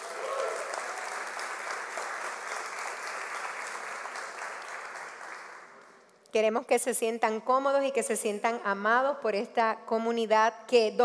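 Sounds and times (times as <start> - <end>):
audience applause: 0.0 - 5.9
speech: 6.3 - 11.0.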